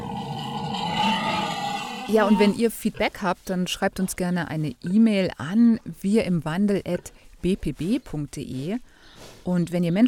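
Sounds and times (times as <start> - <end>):
pigs grunting: 0.0 - 2.6
speech: 2.1 - 10.0.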